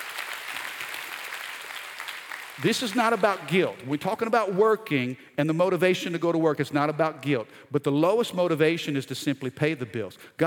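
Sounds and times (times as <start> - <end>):
audience clapping hands: 0.0 - 4.0
speech: 2.6 - 10.4.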